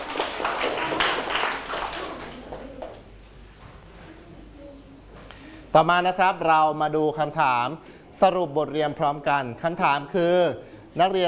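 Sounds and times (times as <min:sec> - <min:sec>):
students clapping hands: 0:00.0 - 0:03.1
speech: 0:05.8 - 0:11.2.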